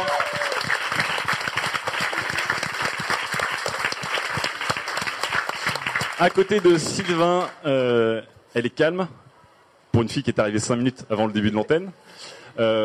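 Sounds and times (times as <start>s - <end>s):
audience applause: 0.0s - 7.6s
speech: 6.2s - 9.2s, 10.0s - 12.8s.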